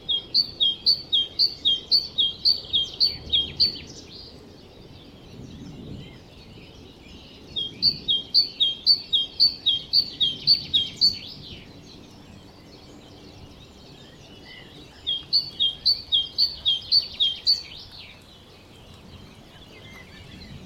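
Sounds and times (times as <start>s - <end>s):
great tit calling: 0.1s - 4.2s, 7.6s - 12.2s, 13.2s - 17.9s.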